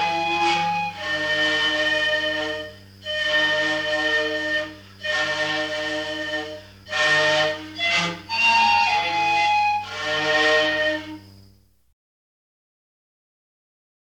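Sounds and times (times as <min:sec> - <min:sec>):
Melanesian panpipes from the Solomon Islands: 0:00.0 - 0:11.2.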